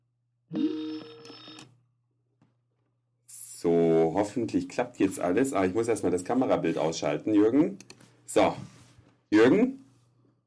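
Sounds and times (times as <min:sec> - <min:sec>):
Skype incoming call ringtone: 0:00.5 - 0:01.7
speech: 0:03.6 - 0:09.8.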